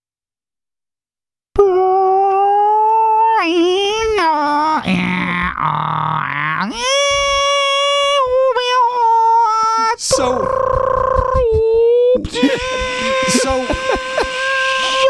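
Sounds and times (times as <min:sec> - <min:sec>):
person imitating a dial-up modem: 0:01.6 - 0:15.0
laughter: 0:10.2 - 0:15.0.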